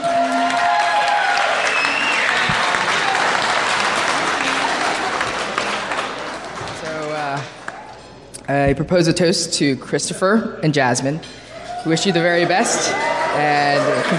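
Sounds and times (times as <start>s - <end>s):
round of applause from wedding guests: 0.0s - 8.0s, 12.9s - 14.1s
speech: 8.5s - 14.1s.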